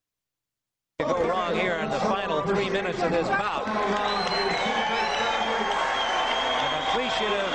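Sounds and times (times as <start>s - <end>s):
speech: 1.0s - 5.2s
boxing crowd applauding: 3.6s - 7.5s.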